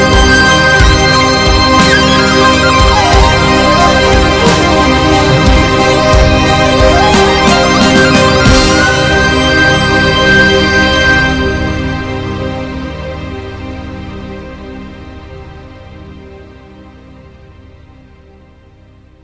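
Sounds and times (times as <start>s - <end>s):
drums: 0.0s - 12.1s
keyboard solo: 0.0s - 13.8s.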